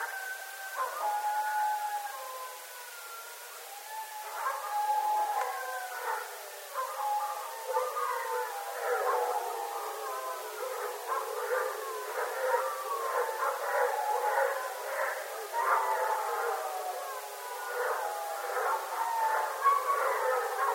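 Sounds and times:
several coyotes yipping and chattering in a chorus: 0:00.0 - 0:20.7.

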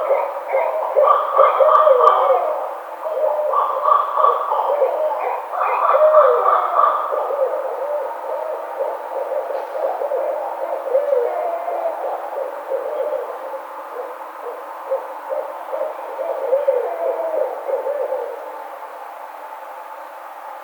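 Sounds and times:
barred owl hooting and whooping: 0:00.0 - 0:20.2.

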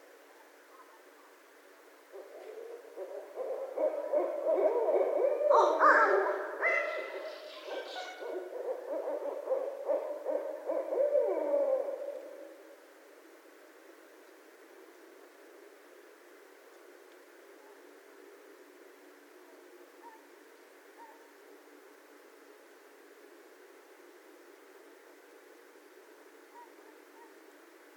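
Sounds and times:
barred owl hooting: 0:02.1 - 0:12.8, 0:19.4 - 0:20.3, 0:20.9 - 0:21.3, 0:26.5 - 0:27.4.

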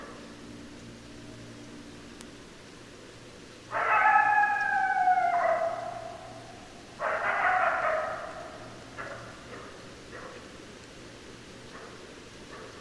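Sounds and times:
faint hiss: 0:00.0 - 0:12.8
coyote howling: 0:03.7 - 0:09.8.

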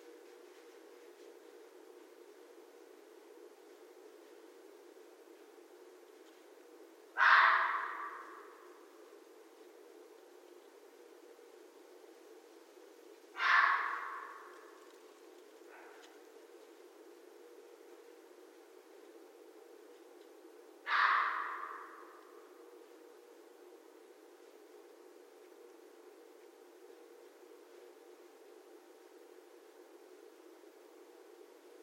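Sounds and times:
faint low hum: 0:00.0 - 0:31.8
red fox barking: 0:07.1 - 0:08.7, 0:13.3 - 0:14.8, 0:15.6 - 0:16.3, 0:20.8 - 0:22.5.

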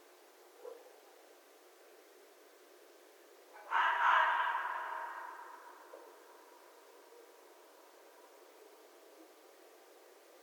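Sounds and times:
red fox screaming: 0:03.6 - 0:06.3.

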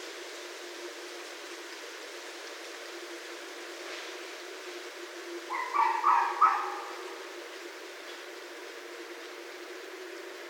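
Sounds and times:
steady hiss: 0:00.0 - 0:10.4
red fox cry: 0:05.5 - 0:07.2.

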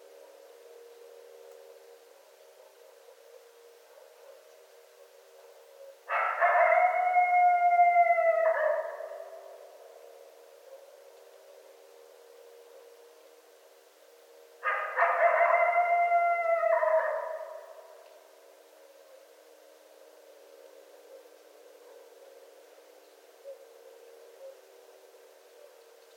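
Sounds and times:
coyotes howling at night: 0:06.1 - 0:09.8, 0:14.6 - 0:18.0.

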